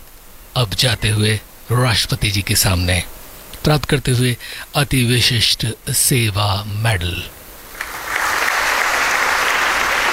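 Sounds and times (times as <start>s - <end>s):
speech: 0.6s - 7.4s
applause at a presidential medal ceremony: 7.7s - 10.1s.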